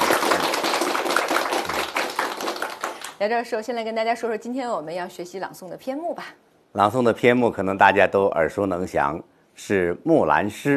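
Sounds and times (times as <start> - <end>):
applause welcoming a guest: 0.0 - 3.2
speech: 3.2 - 10.7.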